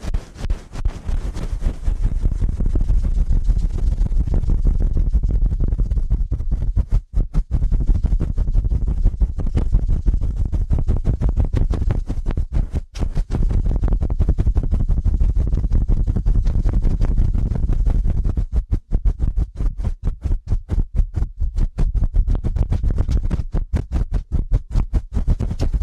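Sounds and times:
scratchy rubbing strokes of very fast ear cleaning: 0.0s - 25.8s.

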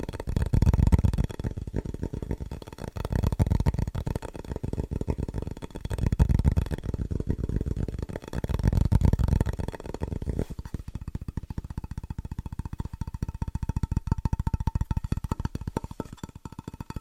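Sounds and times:
fast rhythmic tapping: 0.0s - 16.9s.

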